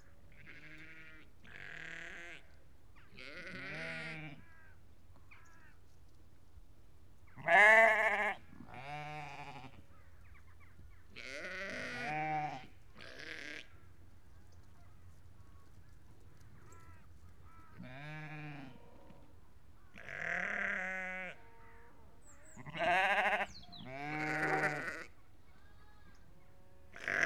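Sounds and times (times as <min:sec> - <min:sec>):
sheep bleating: 0:00.3 - 0:02.4, 0:03.1 - 0:04.7, 0:07.4 - 0:09.8, 0:11.2 - 0:13.7, 0:17.7 - 0:18.8, 0:20.0 - 0:21.9, 0:22.5 - 0:25.2, 0:26.9 - 0:27.2.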